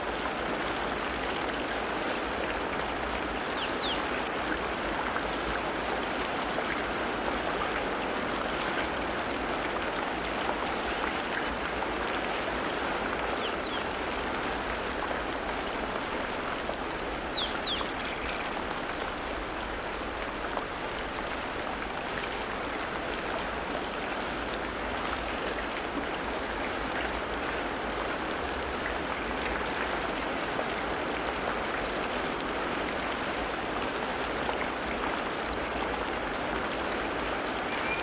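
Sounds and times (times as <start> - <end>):
tropical rain forest sounds: 0.0 - 38.0.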